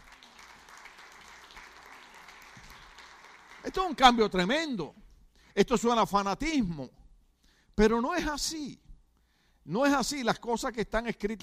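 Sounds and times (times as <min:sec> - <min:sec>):
crowd applause: 0:00.0 - 0:04.2
speech: 0:03.6 - 0:05.0, 0:05.6 - 0:07.0, 0:07.8 - 0:08.8, 0:09.6 - 0:11.4.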